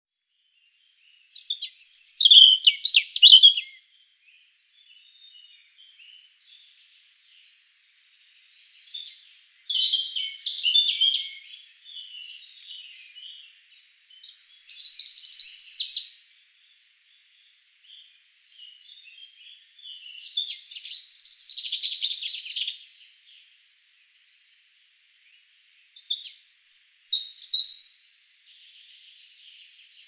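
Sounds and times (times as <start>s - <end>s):
hiss: 0.6s - 30.0s
European robin singing: 0.8s - 24.1s, 25.2s - 30.0s.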